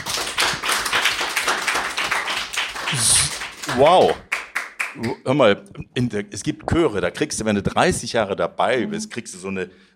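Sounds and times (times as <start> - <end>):
group clapping hands: 0.0 - 5.2
speech: 2.9 - 4.3, 5.0 - 9.9.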